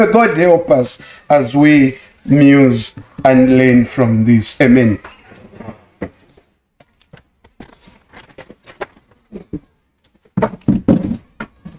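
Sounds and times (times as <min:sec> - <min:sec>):
speech: 0:00.0 - 0:06.2, 0:10.4 - 0:10.6
chair thumping: 0:10.4 - 0:11.7.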